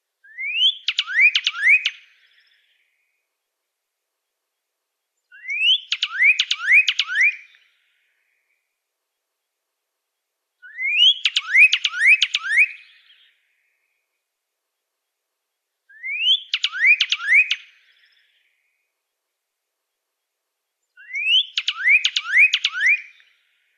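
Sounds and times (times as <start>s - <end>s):
Pyrrhuloxia singing rising whistles: 0.2s - 2.7s, 5.3s - 7.6s, 10.6s - 13.3s, 15.9s - 18.5s, 21.0s - 23.3s.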